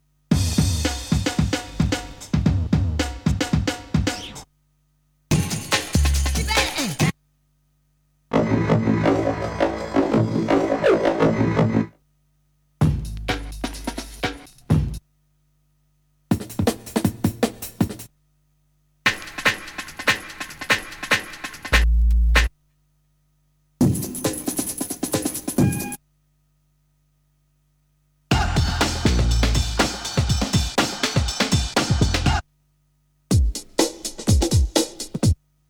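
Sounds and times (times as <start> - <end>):
breakbeat drums: 0.3 - 4.5, 5.3 - 7.2, 8.3 - 11.8, 12.8 - 15.0, 16.3 - 18.1, 19.0 - 22.6, 23.8 - 26.0, 28.3 - 32.4, 33.3 - 35.4.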